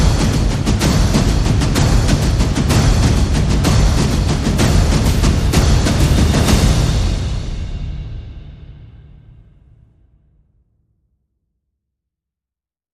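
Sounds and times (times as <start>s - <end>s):
percussion: 0.0s - 10.2s.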